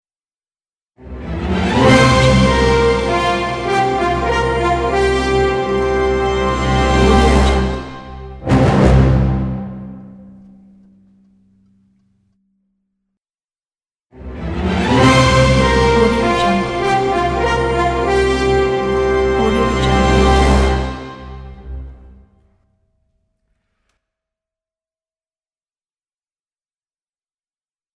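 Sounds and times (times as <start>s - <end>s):
orchestral logo music: 1.0s - 10.4s, 14.2s - 22.3s.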